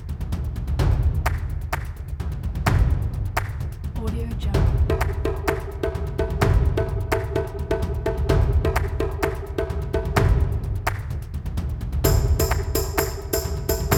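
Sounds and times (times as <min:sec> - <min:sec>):
thunderous drums: 0:00.0 - 0:13.9
claps: 0:01.2 - 0:03.8, 0:04.9 - 0:05.8, 0:08.7 - 0:11.2, 0:12.1 - 0:13.9.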